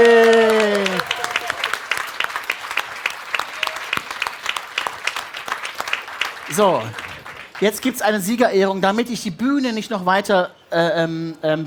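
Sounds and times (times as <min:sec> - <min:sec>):
audience applause: 0:00.0 - 0:08.0
speech: 0:06.6 - 0:07.0, 0:07.6 - 0:11.6.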